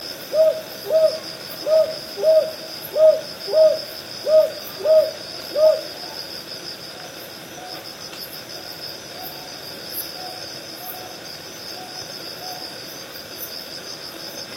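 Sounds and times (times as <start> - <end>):
high insect chorus: 0.0 - 14.5
Northern boobook hooting: 0.3 - 6.0.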